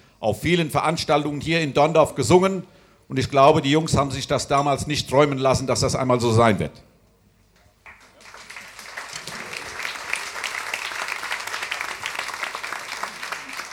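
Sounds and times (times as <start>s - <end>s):
speech: 0.2s - 6.9s
audience applause: 7.9s - 13.7s.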